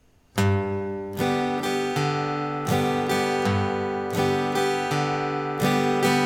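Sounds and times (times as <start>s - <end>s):
guitar playing a pop-style alternating bass pattern on a G chord: 0.3s - 6.2s.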